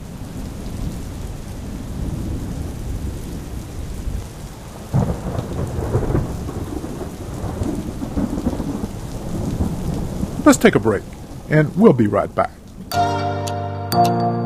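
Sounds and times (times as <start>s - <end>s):
heavy rain hissing in a raging thunderstorm outside: 0.0s - 12.9s
thunder rumbling in a raging thunderstorm: 0.4s - 12.9s
speech: 10.5s - 13.0s, 14.0s - 14.3s.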